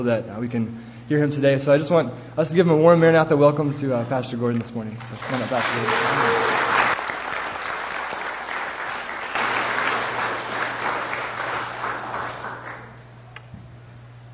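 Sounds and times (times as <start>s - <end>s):
speech: 0.0s - 6.6s
audience clapping for arriving speaker: 5.0s - 13.1s.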